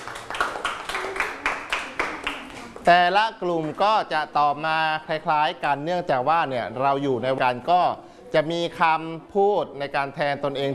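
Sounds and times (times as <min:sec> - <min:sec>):
classmates clapping in rhythmic unison in a classroom: 0:00.0 - 0:02.9
speech: 0:02.9 - 0:10.7.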